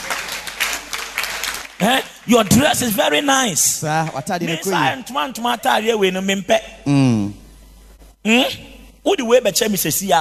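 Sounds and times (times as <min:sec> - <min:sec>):
audience clapping in church: 0:00.0 - 0:03.3
speech: 0:01.8 - 0:07.2, 0:08.2 - 0:10.1.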